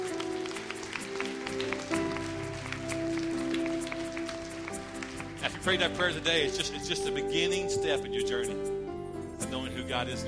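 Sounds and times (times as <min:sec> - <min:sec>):
audience hand clapping: 0:00.0 - 0:07.2
sustained mellow keyboard chords: 0:00.0 - 0:10.2
speech: 0:05.4 - 0:08.8, 0:09.4 - 0:10.2.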